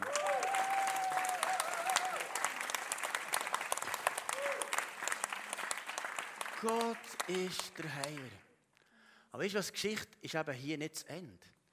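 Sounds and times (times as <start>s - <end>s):
audience clapping: 0.0s - 8.5s
speech: 6.6s - 8.4s, 9.3s - 11.5s.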